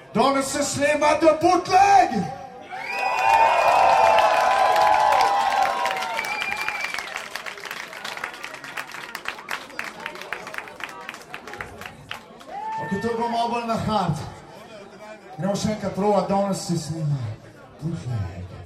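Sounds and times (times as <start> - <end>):
speech: 0.2 - 2.4, 13.5 - 14.3, 15.4 - 18.6
studio audience cheering and shouting at a TV show taping: 2.7 - 7.0
studio audience clapping at a TV show taping: 3.0 - 12.8.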